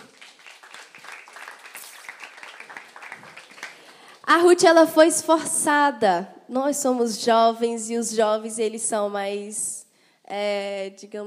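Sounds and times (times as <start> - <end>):
crowd applause: 0.0 - 4.2
speech: 4.3 - 11.2.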